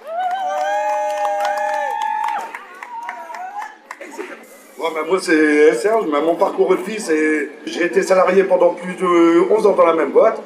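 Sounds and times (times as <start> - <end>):
crowd cheering with a high whoop: 0.0 - 3.8
speech: 4.8 - 10.4.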